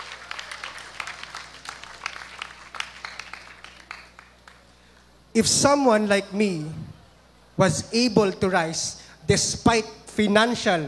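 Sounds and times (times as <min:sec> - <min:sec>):
scattered applause at a school campus ceremony: 0:00.0 - 0:04.7
speech: 0:05.4 - 0:06.9, 0:07.6 - 0:10.8.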